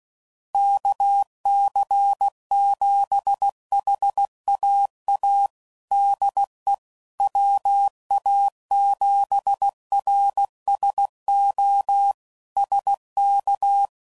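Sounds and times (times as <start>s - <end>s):
ham radio Morse code groups and contacts: 0.6s - 13.9s.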